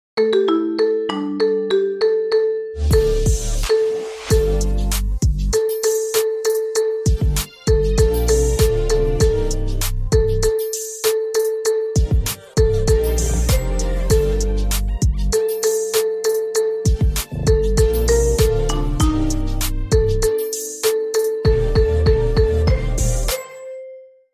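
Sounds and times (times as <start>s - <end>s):
marimba: 0.2s - 24.0s.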